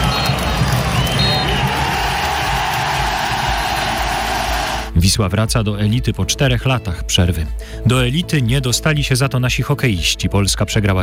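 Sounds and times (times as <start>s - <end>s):
stadium crowd cheering after final whistle: 0.0s - 4.9s
speech: 5.1s - 11.0s.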